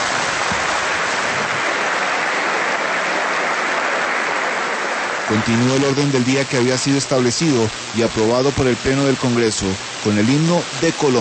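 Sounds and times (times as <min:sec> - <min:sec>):
strong applause in Congress: 0:00.0 - 0:05.6
speech: 0:05.3 - 0:11.1.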